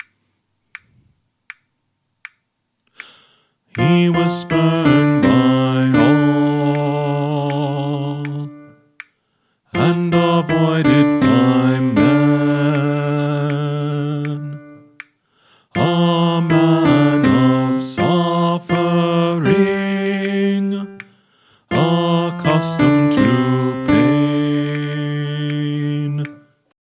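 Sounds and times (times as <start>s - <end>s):
choir singing practice track: 3.8s - 8.5s, 9.8s - 14.5s, 15.8s - 21.0s, 21.7s - 26.3s.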